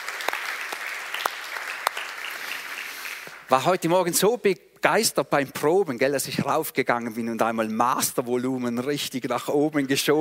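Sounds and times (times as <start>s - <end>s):
audience applause: 0.0s - 3.5s
speech: 3.5s - 10.1s.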